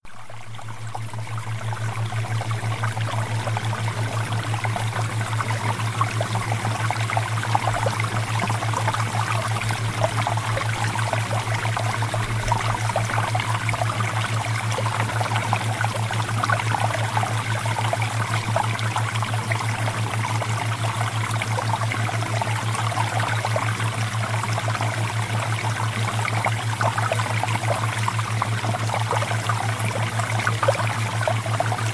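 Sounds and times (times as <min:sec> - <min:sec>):
flowing water: 0:00.0 - 0:31.9.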